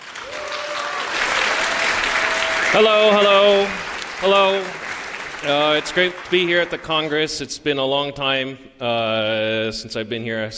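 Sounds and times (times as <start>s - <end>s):
audience applause for a speaker at a congress: 0.0s - 7.4s
speech: 2.7s - 4.8s, 5.4s - 10.5s.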